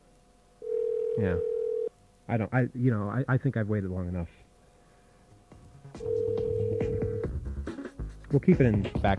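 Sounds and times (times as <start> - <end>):
telephone ringing tone: 0.6 - 1.9, 6.0 - 7.3
speech: 1.2 - 1.5, 2.3 - 4.4, 8.3 - 9.1.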